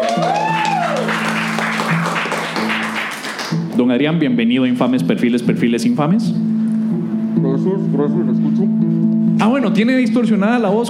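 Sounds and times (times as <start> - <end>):
audience applause: 0.0 - 3.6
sustained musical tone: 0.9 - 10.8
speech: 3.8 - 6.4, 7.5 - 10.8.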